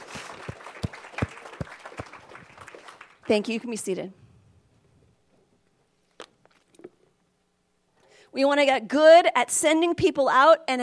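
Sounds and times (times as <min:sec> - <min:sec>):
audience hand clapping: 0:00.0 - 0:03.6
speech: 0:03.3 - 0:04.2, 0:08.4 - 0:10.8.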